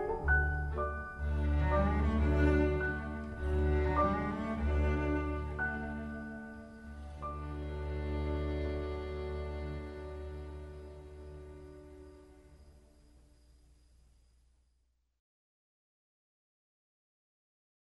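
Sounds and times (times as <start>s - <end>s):
piano quintet in A major: 0.0s - 12.0s.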